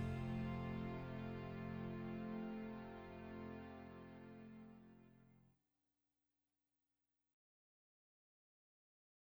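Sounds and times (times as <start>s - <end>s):
slow blues backing music: 0.0s - 3.6s.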